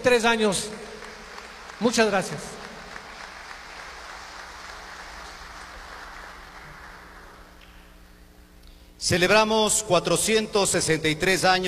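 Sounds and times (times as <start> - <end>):
speech: 0.0 - 0.9, 1.8 - 2.6, 9.0 - 11.6
audience applause: 0.8 - 7.6.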